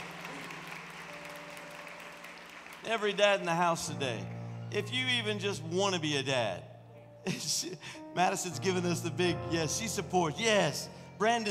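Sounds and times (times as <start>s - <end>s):
audience clapping: 0.0s - 4.0s
speech: 2.8s - 11.4s.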